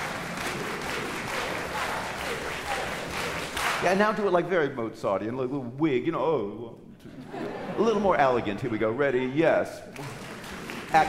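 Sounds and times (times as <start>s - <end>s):
audience clapping two claps per beat: 0.0s - 4.5s, 9.8s - 11.0s
speech: 3.8s - 10.2s
laughter: 7.0s - 9.4s.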